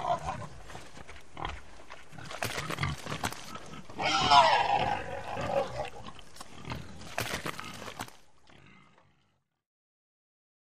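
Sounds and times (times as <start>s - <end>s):
pig grunting and squealing: 0.0s - 9.4s.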